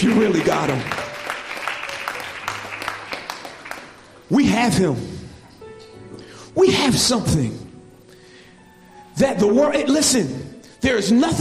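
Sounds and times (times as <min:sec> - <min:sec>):
speech: 0:00.0 - 0:01.0, 0:04.3 - 0:05.1, 0:06.6 - 0:07.6, 0:09.2 - 0:11.3
crowd clapping in praise: 0:00.0 - 0:04.6.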